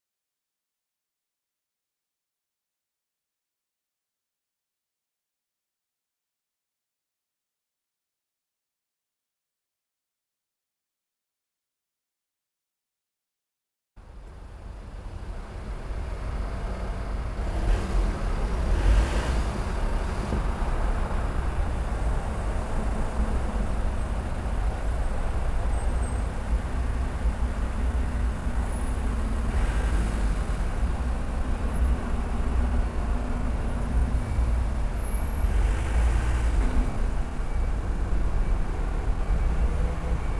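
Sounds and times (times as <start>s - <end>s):
tube train: 14.0s - 40.3s.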